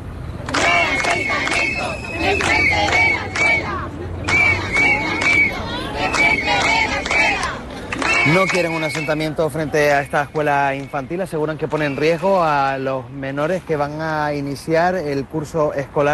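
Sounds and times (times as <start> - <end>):
protest crowd shouting a chanted slogan: 0.5 - 9.0
speech: 8.3 - 16.1.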